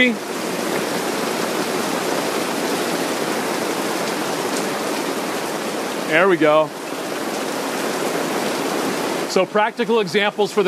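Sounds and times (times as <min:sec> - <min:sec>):
speech: 0:00.0 - 0:00.3, 0:06.1 - 0:06.8, 0:09.3 - 0:10.6
rain falling: 0:00.0 - 0:10.6.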